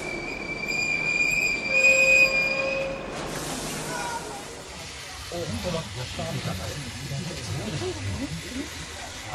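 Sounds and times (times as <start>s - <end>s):
train wheels squealing as it brakes: 0.0s - 4.2s
railcars rolling with a low rumble: 0.0s - 9.3s
voices: 3.8s - 9.3s.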